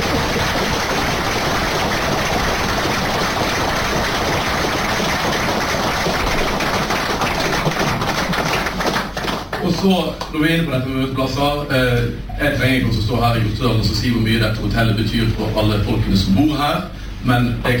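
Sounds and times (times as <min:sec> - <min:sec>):
audience applause: 0:00.0 - 0:09.9
speech: 0:09.8 - 0:17.7.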